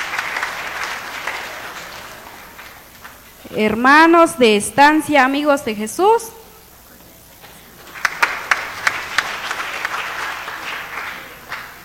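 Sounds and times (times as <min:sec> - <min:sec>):
audience applause: 0:00.0 - 0:03.4, 0:07.4 - 0:11.8
speech: 0:03.5 - 0:06.4.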